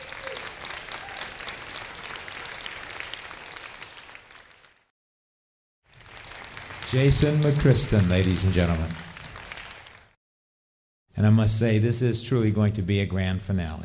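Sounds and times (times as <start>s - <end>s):
audience applause: 0.0s - 4.9s, 5.9s - 10.2s
speech: 6.9s - 9.0s, 11.2s - 13.8s.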